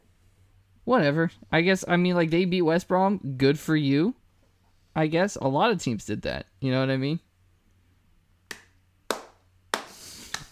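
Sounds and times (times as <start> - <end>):
speech: 0.9 - 4.2, 5.0 - 7.3
hand clapping: 8.5 - 10.4.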